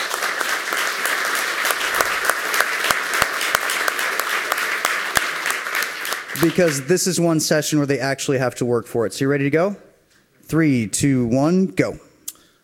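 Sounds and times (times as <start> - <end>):
audience applause: 0.0 - 7.0
speech: 6.4 - 9.9, 10.5 - 12.0.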